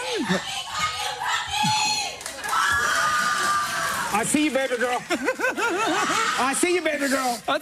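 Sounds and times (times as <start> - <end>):
live audience shouting and cheering: 0.0 - 7.3
speech: 0.2 - 0.7, 4.2 - 7.6
laughter: 3.2 - 7.4.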